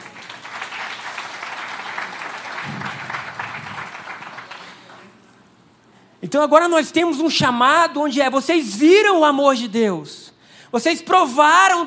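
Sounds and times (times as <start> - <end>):
audience applause: 0.0 - 5.3
speech: 6.2 - 11.8.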